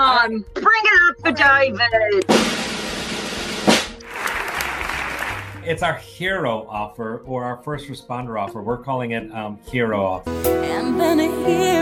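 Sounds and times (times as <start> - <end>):
speech: 0.2 - 3.0, 5.6 - 11.8
hands clapping: 4.0 - 5.9.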